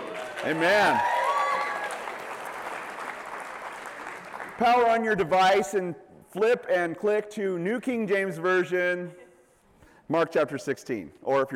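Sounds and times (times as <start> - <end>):
audience clapping: 0.0 - 5.3
speech: 0.4 - 1.1, 4.6 - 9.2, 10.1 - 11.5.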